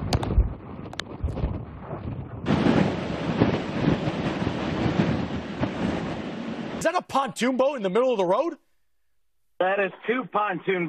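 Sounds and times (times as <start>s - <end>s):
hurricane wind gusts: 0.0s - 8.5s
speech: 6.8s - 8.6s, 9.6s - 10.8s.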